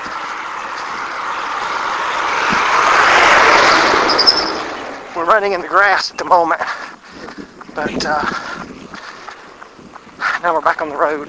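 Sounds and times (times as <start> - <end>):
school bus driving past: 0.0 - 5.7
speech: 5.3 - 6.8, 7.8 - 8.5, 10.4 - 11.2.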